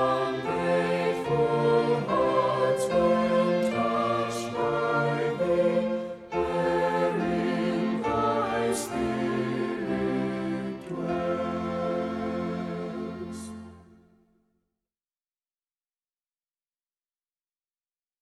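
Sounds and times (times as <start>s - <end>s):
hymn with words and music: 0.0s - 14.6s.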